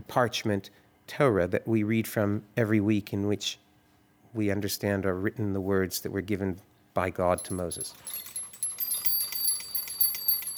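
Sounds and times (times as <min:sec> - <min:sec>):
speech: 0:00.1 - 0:03.6, 0:04.4 - 0:08.3
tinkling bells of Torah rimonim being shaken: 0:07.3 - 0:10.5.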